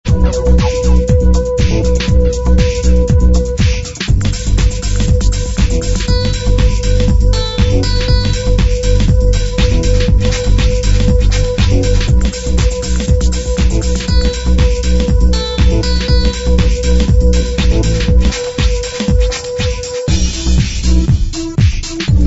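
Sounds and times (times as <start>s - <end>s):
tech anthem: 0.1s - 22.2s.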